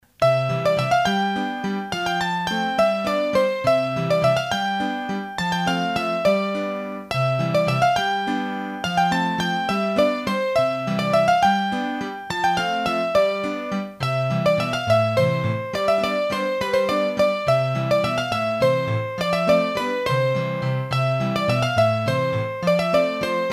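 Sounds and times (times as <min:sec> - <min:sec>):
hurdy-gurdy playing a bourree from Auvergne: 0:00.2 - 0:23.5.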